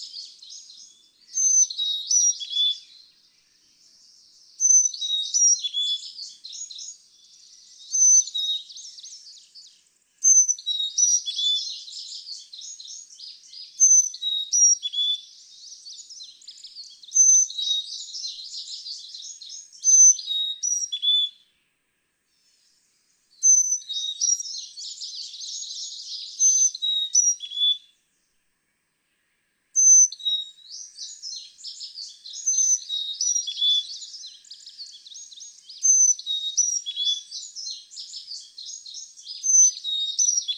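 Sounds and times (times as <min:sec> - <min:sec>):
Carolina Chickadee calling: 0:00.0 - 0:03.6, 0:04.6 - 0:21.4, 0:23.4 - 0:27.9, 0:29.8 - 0:40.5.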